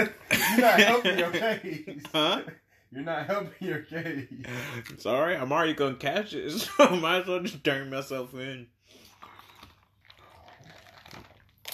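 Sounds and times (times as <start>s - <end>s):
speech: 0.0s - 8.8s
person gulping water: 9.0s - 11.7s.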